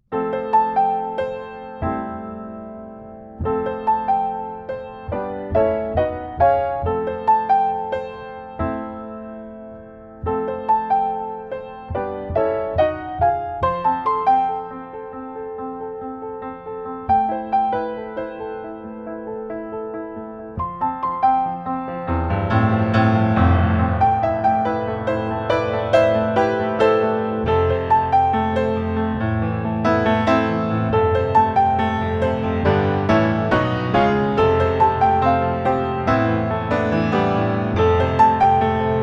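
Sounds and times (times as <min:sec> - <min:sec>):
piano music: 0:00.0 - 0:39.0.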